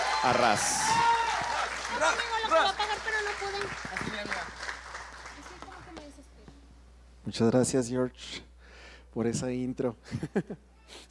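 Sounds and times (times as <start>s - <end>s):
audience applause: 0.0s - 6.1s
speech: 0.2s - 1.2s, 2.0s - 4.6s, 7.3s - 8.5s, 9.2s - 11.0s
laughter: 10.1s - 10.6s.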